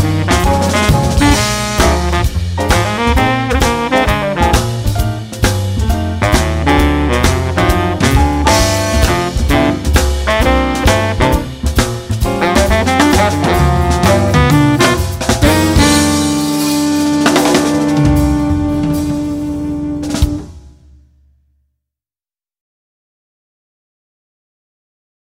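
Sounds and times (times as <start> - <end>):
jazz blues with baritone sax soloist: 0.0 - 20.7.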